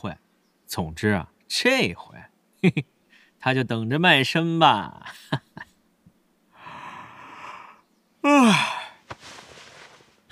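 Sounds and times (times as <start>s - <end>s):
speech: 0.0s - 5.6s, 8.3s - 8.8s
person yawning: 7.0s - 9.0s.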